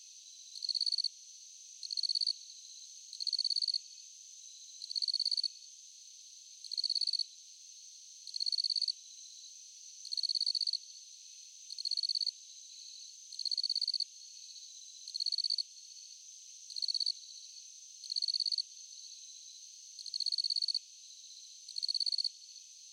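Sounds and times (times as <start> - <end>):
crickets at night: 0.0 - 22.9.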